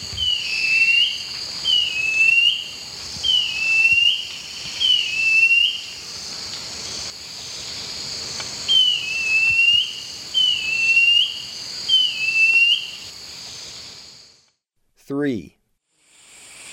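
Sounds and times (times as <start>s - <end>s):
Cinereous Mourner calling: 0.0s - 6.0s, 8.7s - 13.1s.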